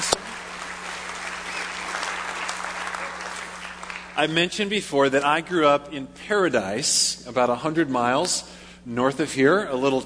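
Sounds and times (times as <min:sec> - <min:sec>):
congregation clapping at a church worship service: 0:00.0 - 0:04.5
speech: 0:04.2 - 0:10.0.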